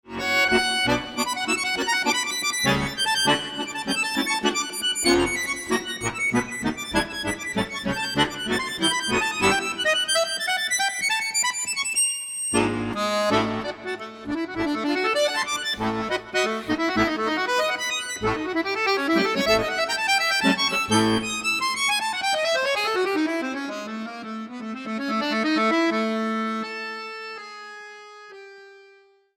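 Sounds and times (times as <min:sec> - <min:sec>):
accordion playing a tarantella: 0:00.0 - 0:29.1.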